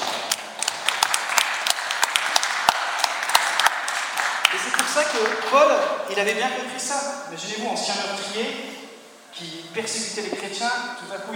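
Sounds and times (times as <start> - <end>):
audience applauding: 0.0 - 6.0
speech: 5.2 - 8.8, 9.4 - 11.3.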